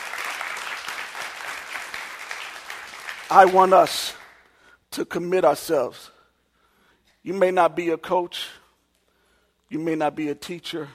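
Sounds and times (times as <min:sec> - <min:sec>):
audience clapping hands: 0:00.0 - 0:04.5
speech: 0:03.3 - 0:04.2, 0:05.0 - 0:06.2, 0:07.2 - 0:08.6, 0:09.7 - 0:10.9.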